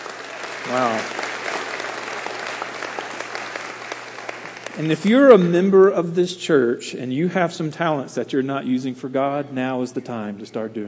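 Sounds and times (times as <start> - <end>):
audience applause: 0.0 - 5.5
speech: 0.6 - 1.2, 4.8 - 10.8.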